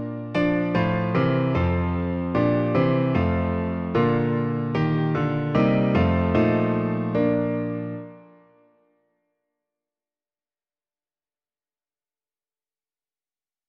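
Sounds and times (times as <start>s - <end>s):
piano: 0.0s - 9.1s.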